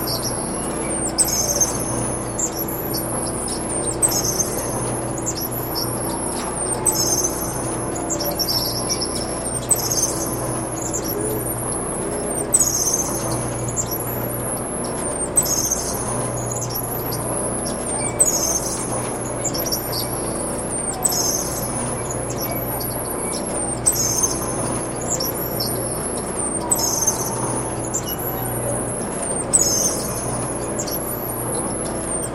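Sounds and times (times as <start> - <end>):
squeaky machine ambience in a horror laboratory: 0.0 - 32.3.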